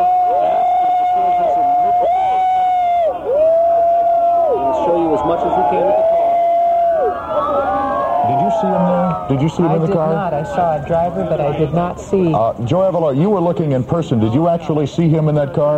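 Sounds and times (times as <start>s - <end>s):
people shouting: 0.0s - 10.8s
speech: 9.3s - 15.7s.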